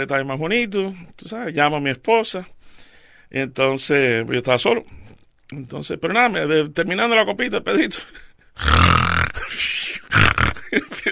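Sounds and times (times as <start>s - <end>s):
speech: 0.0s - 2.6s, 3.3s - 11.0s
person imitating snoring: 8.6s - 10.8s.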